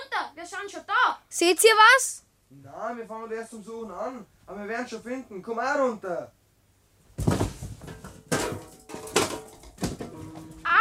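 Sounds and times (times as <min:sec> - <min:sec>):
speech: 0:00.4 - 0:06.4
stacked boxes toppling over: 0:07.1 - 0:10.6.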